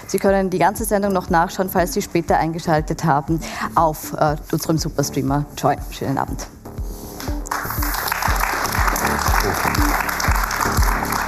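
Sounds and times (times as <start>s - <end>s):
speech: 0.1s - 6.6s
audience applause: 7.2s - 11.2s.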